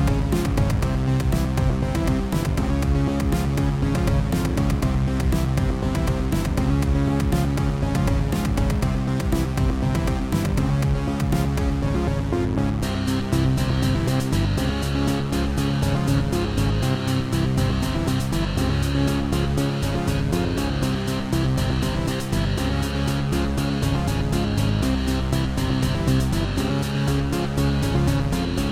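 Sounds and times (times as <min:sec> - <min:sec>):
music at medium level: 0:00.0 - 0:28.7.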